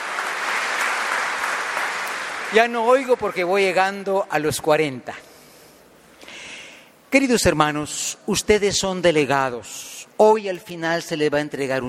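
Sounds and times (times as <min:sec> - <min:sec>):
audience applause: 0:00.0 - 0:03.2
speech: 0:02.5 - 0:05.3, 0:07.1 - 0:11.8.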